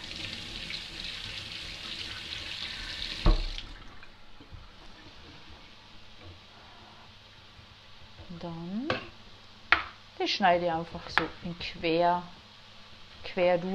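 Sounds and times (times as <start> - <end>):
running tap water rinsing date tomatoes in a sink: 0.0 - 6.4
speech: 8.4 - 9.0, 10.3 - 12.4, 13.3 - 13.7.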